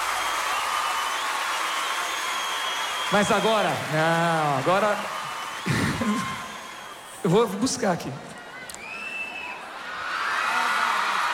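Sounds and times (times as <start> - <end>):
audience clapping: 0.0 - 7.4, 10.1 - 11.3
speech: 3.1 - 6.4, 7.2 - 8.4.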